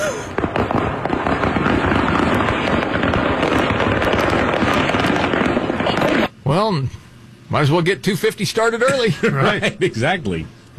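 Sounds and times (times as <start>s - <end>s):
fireworks exploding over a highway: 0.0s - 6.3s
speech: 6.6s - 10.7s
laughter: 8.9s - 10.1s.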